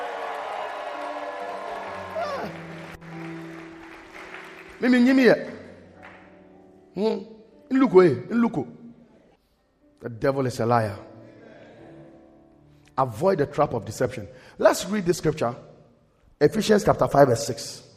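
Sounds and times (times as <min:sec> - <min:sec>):
audience shouting: 0:00.0 - 0:02.9
audience clapping hands: 0:00.0 - 0:06.4
speech: 0:04.8 - 0:05.5, 0:07.0 - 0:08.8, 0:10.0 - 0:11.1, 0:13.0 - 0:15.7, 0:16.4 - 0:17.9.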